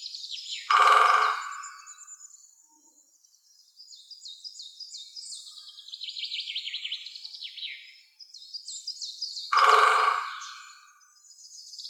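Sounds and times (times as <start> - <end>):
woodpeckers Picidae: 0.7 - 2.0, 9.5 - 11.0.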